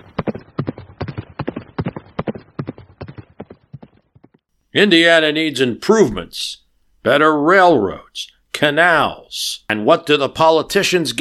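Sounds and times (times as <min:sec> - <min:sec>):
horse hooves clip-clopping: 0:00.0 - 0:04.4
speech: 0:04.8 - 0:11.1.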